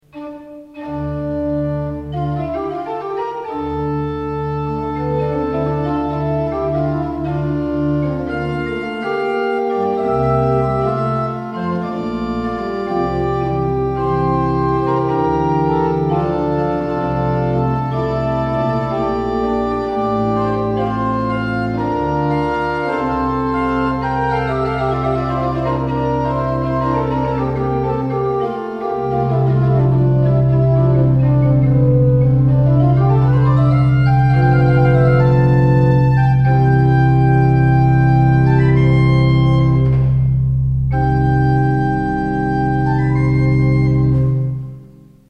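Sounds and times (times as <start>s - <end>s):
organ playing salicional and flute stops: 0.0s - 45.2s.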